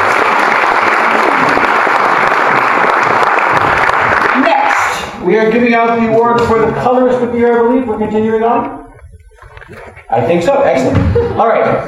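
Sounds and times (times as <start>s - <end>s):
audience applause: 0.0s - 5.0s
speech: 5.3s - 8.8s, 9.7s - 11.8s.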